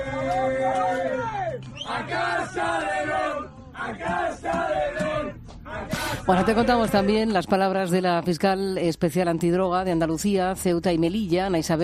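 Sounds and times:
team singing and chanting in unison on a bus: 0.0s - 7.7s
speech: 6.3s - 11.8s.

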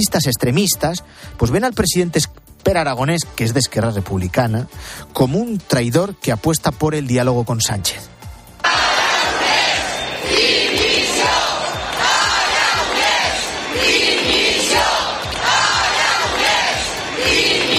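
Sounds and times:
speech: 0.0s - 8.1s
large crowd chanting calls for resignation: 8.6s - 17.7s.

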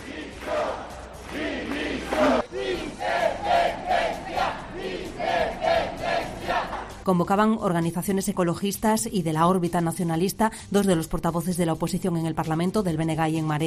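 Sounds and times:
protest crowd shouting slogans: 0.0s - 7.0s
speech: 7.1s - 13.6s.

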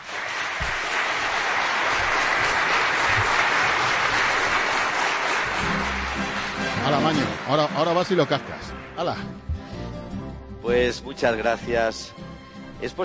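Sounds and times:
crowd applause: 0.0s - 9.3s
speech: 6.9s - 9.5s, 10.6s - 12.2s, 12.8s - 13.0s.

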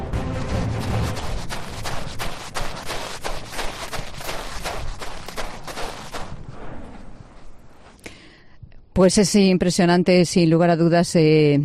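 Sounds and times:
footsteps crunching on accumulated volcanic ash: 0.2s - 8.0s
speech: 9.0s - 11.6s.

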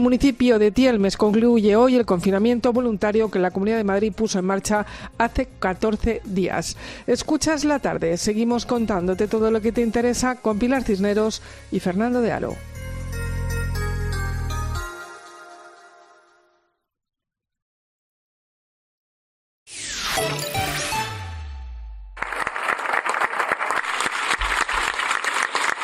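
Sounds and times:
speech: 0.0s - 12.7s
musical jingle: 12.8s - 16.7s, 20.0s - 22.1s
loud dense applause from many hands: 22.2s - 25.8s.

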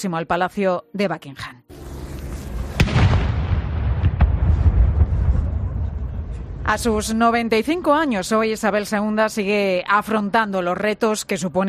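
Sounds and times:
speech: 0.0s - 1.7s, 6.7s - 11.6s
low rumble: 1.7s - 8.0s
41-gun cannon salute fired by a royal regiment in Green Park, London: 2.4s - 6.0s.

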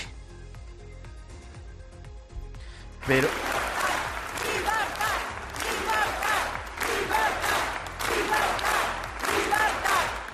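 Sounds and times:
speech: 3.1s - 3.6s
businessmen shouting for freedom for jailed politicians: 3.4s - 10.3s.

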